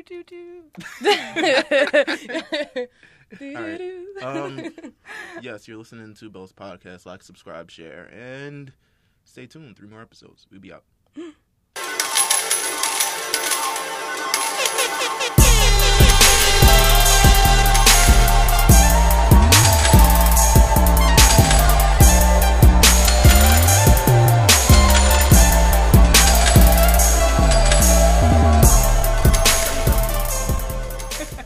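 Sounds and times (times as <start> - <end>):
speech: 0.0 - 11.4
laughter: 0.8 - 5.4, 31.0 - 31.4
upbeat podcast intro theme music: 3.6 - 4.6, 11.8 - 31.4.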